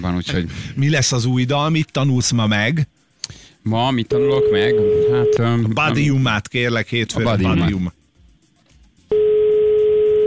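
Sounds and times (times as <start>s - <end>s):
speech: 0.0s - 8.0s
telephone tone from an unanswered outgoing call to a radio listener: 4.1s - 5.5s, 9.1s - 10.2s.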